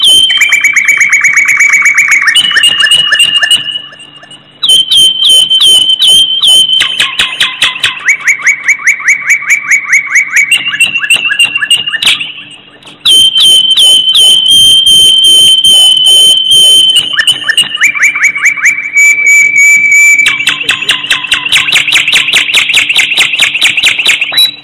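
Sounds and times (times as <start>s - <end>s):
bird chirps and whistle: 0.0s - 24.6s.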